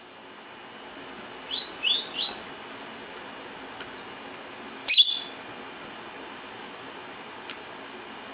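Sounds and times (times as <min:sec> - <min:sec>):
lovebird giving shrill sharp chirps: 0:01.4 - 0:02.4, 0:04.8 - 0:05.4.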